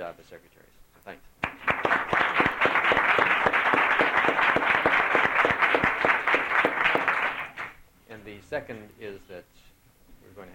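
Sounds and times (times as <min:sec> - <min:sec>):
speech: 0:00.0 - 0:01.9, 0:08.5 - 0:09.7, 0:10.4 - 0:10.5
applause: 0:01.4 - 0:07.8.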